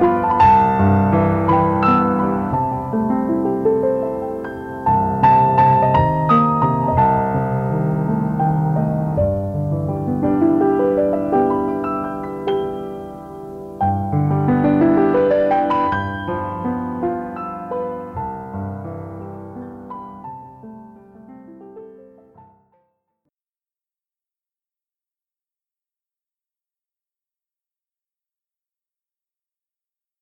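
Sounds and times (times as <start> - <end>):
ballet music: 0.0 - 22.8.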